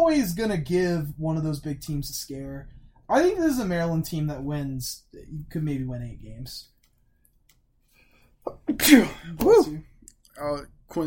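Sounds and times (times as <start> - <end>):
speech: 0.0 - 6.7, 8.4 - 11.0
person sneezing: 8.5 - 9.8.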